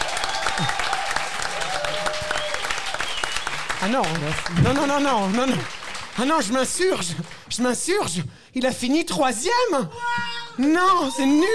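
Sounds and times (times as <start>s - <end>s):
people whooping: 0.0s - 3.7s
audience applause: 0.0s - 7.8s
speech: 3.8s - 11.5s.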